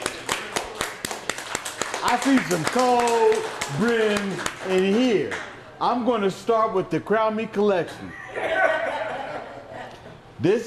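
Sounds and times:
audience clapping: 0.0 - 5.6
speech: 2.0 - 9.0, 10.4 - 10.6
laughter: 8.2 - 10.3.

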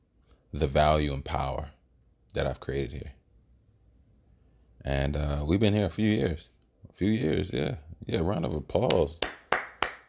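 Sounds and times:
speech: 0.5 - 3.2, 4.8 - 9.4
clapping: 8.8 - 10.0.

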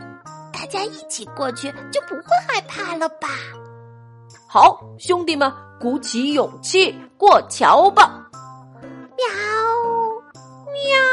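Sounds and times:
speech: 0.7 - 3.7, 4.3 - 8.2
cats meowing: 9.2 - 10.1, 10.7 - 11.1.

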